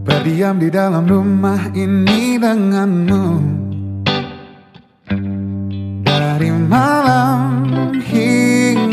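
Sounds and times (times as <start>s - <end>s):
pop song: 0.1s - 4.5s, 6.0s - 8.9s
speech: 0.3s - 3.6s.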